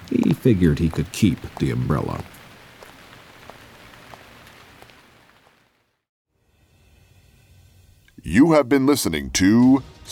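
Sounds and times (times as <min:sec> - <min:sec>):
steady rain pattering on a hard surface: 0:00.0 - 0:06.1
speech: 0:00.4 - 0:02.4, 0:08.4 - 0:10.1.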